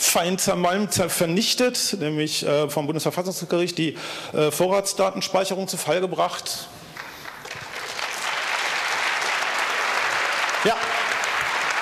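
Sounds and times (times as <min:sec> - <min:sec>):
speech: 0:00.1 - 0:06.8
audience applause: 0:07.0 - 0:11.8.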